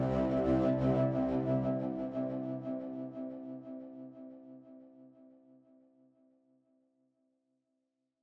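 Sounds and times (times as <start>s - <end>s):
synth pad: 0.0s - 3.9s.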